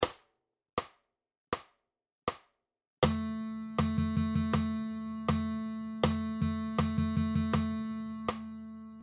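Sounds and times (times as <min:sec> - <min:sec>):
guitar playing rhythm dictation exercises: 0:03.0 - 0:09.0.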